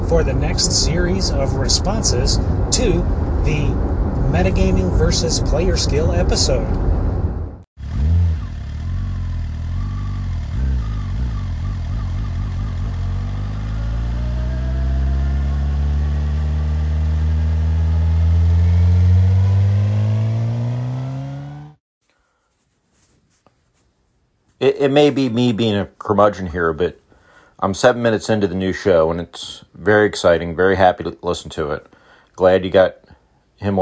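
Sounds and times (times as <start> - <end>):
car engine while driving, accelerating: 0.0 - 21.8
speech: 0.1 - 6.9, 24.6 - 27.0, 27.6 - 33.0, 33.6 - 33.7.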